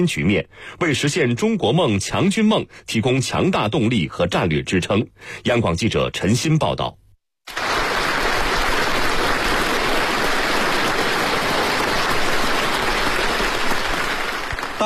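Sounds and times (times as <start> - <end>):
speech: 0.0 - 7.6
applause in a large meeting hall of military delegates: 7.5 - 14.8.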